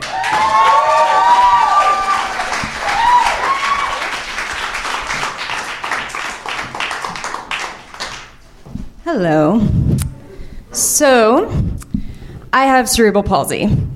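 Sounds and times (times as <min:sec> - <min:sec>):
high whoops and cheers: 0:00.0 - 0:04.2
crowd applauding: 0:00.0 - 0:08.4
speech: 0:09.1 - 0:09.7, 0:11.0 - 0:11.6, 0:12.5 - 0:13.9.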